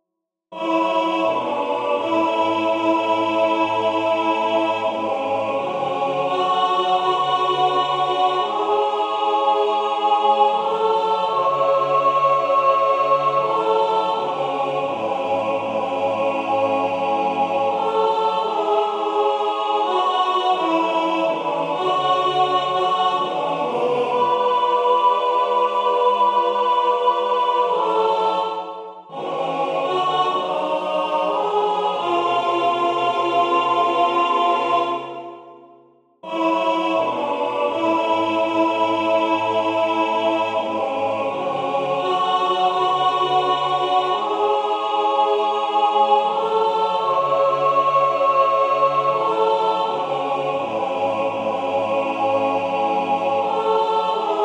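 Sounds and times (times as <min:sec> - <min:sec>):
alto voice chanting: 0:00.5 - 0:54.4.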